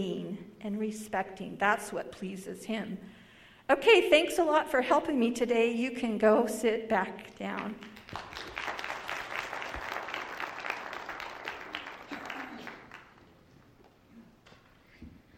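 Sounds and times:
speech: 0:00.0 - 0:08.8
audience applause: 0:07.8 - 0:13.6.

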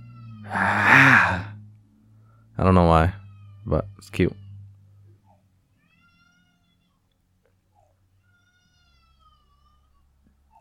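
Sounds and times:
cat screaming: 0:00.3 - 0:01.5
speech: 0:02.6 - 0:04.4.

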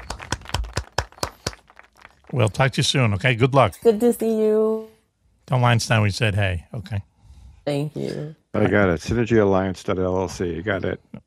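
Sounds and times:
round of applause: 0:00.0 - 0:02.9
speech: 0:02.3 - 0:04.9, 0:05.5 - 0:07.1, 0:07.7 - 0:11.2.

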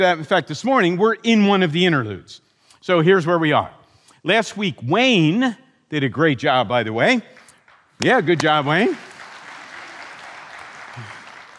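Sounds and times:
speech: 0:00.0 - 0:07.4, 0:08.0 - 0:09.1
audience clapping: 0:07.3 - 0:11.5.

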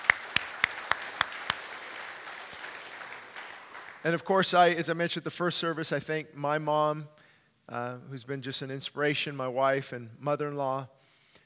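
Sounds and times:
audience applause: 0:00.0 - 0:04.1
speech: 0:04.0 - 0:11.0.

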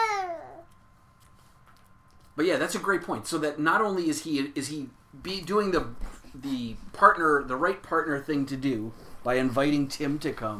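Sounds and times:
one-year-old baby babbling: 0:00.0 - 0:00.7
speech: 0:02.4 - 0:10.5.

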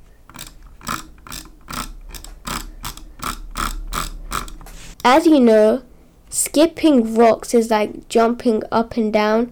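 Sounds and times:
rapid drag clicking on a Razer DeathAdder V2 gaming mouse: 0:00.0 - 0:05.2
speech: 0:05.0 - 0:09.4.

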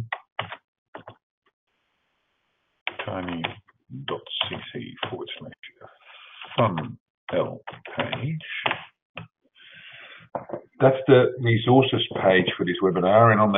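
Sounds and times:
typing a web address on a computer keyboard: 0:00.0 - 0:01.2, 0:02.9 - 0:05.2
speech: 0:03.1 - 0:08.7, 0:10.8 - 0:13.5.

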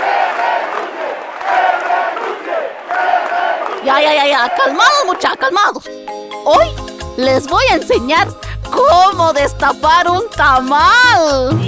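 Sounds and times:
large crowd chanting slogans in unison in a plaza: 0:00.0 - 0:05.4
speech: 0:03.9 - 0:11.6.

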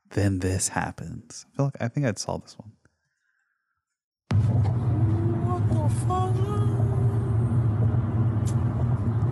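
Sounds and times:
speech: 0:00.2 - 0:02.8
18-wheeler tire rolling down a highway: 0:04.3 - 0:09.3.

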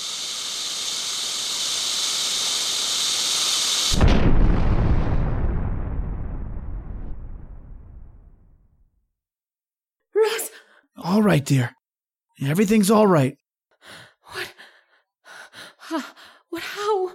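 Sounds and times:
meteor hiss in a radio drama: 0:00.0 - 0:04.0
meteor crashing into a field with a deep explosive boom: 0:04.0 - 0:08.9
speech: 0:11.2 - 0:11.8, 0:12.4 - 0:14.5, 0:15.9 - 0:17.1.

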